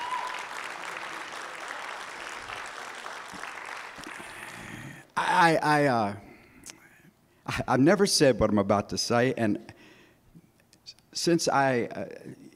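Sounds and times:
audience applause: 0.0s - 5.0s
speech: 5.4s - 6.2s, 7.5s - 9.7s, 11.2s - 12.4s.

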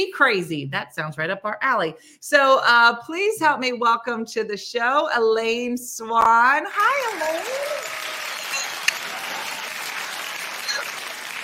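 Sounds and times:
speech: 0.0s - 8.0s
audience applause: 6.8s - 11.4s.

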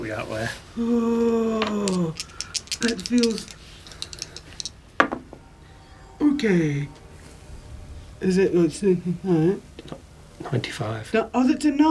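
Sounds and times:
speech: 0.1s - 3.6s, 6.4s - 7.0s, 8.2s - 11.9s
D100 and D10 dice rolled onto a hard surface: 1.6s - 4.7s.

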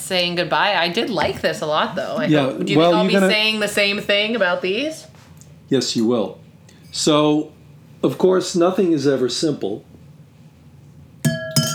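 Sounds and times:
speech: 0.1s - 5.1s, 5.7s - 10.0s
wine glass clinking while dumping sherry: 11.2s - 11.7s.

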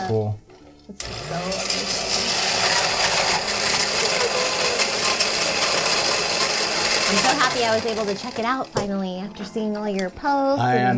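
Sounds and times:
speech: 0.1s - 2.2s, 7.1s - 10.9s
blender running: 1.0s - 8.9s.

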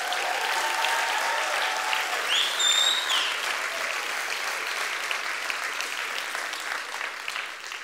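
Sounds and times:
audience applauding: 0.0s - 7.8s
high whistle: 2.3s - 3.3s.

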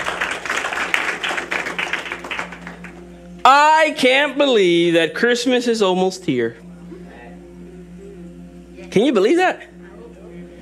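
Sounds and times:
audience applause: 0.0s - 3.0s
speech: 3.4s - 6.6s, 9.0s - 9.7s.

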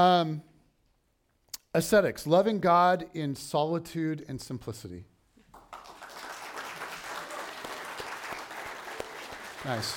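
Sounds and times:
speech: 0.0s - 0.5s, 1.8s - 5.1s, 9.6s - 9.9s
quiet audience clapping: 5.4s - 9.9s.

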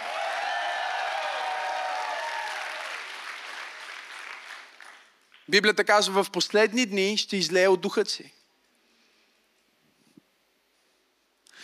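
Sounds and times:
cheers and shouts: 0.0s - 3.0s
large audience applause: 0.0s - 5.2s
speech: 5.5s - 8.4s.

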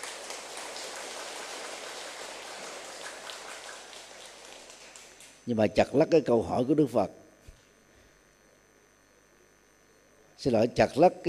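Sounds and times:
audience applause: 0.0s - 5.4s
speech: 5.5s - 7.2s, 10.4s - 11.2s.

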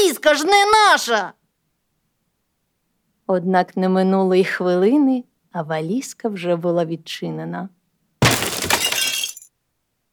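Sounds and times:
speech: 0.2s - 1.4s, 3.3s - 7.8s
tinkling cup shards scattering: 8.2s - 9.4s
cup shattering: 8.2s - 9.5s.

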